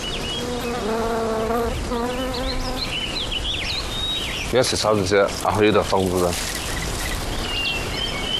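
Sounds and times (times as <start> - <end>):
bees buzzing while collecting nectar: 0.0 - 3.3
birds chirping: 0.0 - 8.3
soft outdoor hiss: 0.0 - 8.3
speech: 4.5 - 6.6.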